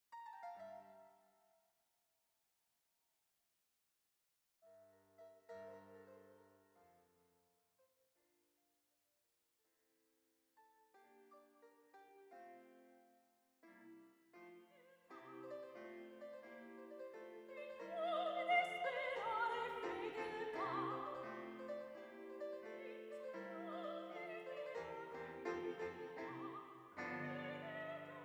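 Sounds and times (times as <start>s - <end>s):
classical music in ambisonics: 0.0s - 1.5s, 4.6s - 7.4s, 10.6s - 28.2s.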